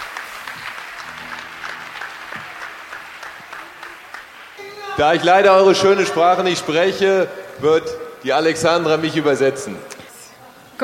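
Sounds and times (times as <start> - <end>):
crowd applause: 0.0 - 7.0
speech: 5.0 - 9.9.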